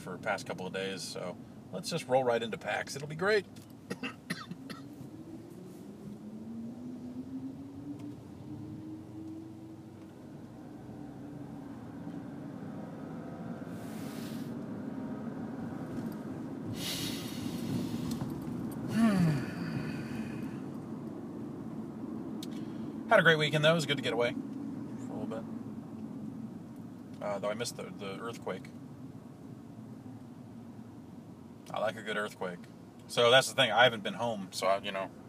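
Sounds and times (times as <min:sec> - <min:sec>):
car engine drone inside a moving car: 0:00.0 - 0:35.2
speech: 0:00.1 - 0:04.2, 0:23.2 - 0:24.6, 0:27.4 - 0:28.8, 0:31.8 - 0:35.2
harsh coughs: 0:03.9 - 0:04.9.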